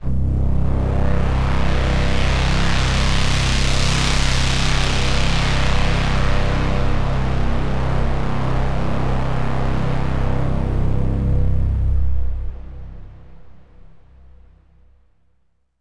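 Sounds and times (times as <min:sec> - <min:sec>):
overlay drone: 0:00.0 - 0:14.8.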